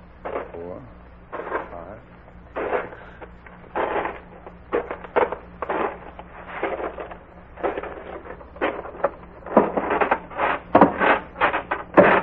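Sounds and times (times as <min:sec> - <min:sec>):
footsteps on creaking wooden porch stairs: 0:02.6 - 0:12.2.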